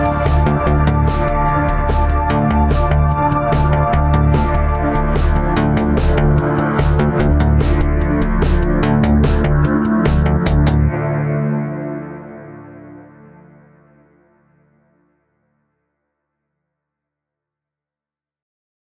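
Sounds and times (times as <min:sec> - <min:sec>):
thematic music: 0:00.0 - 0:14.4.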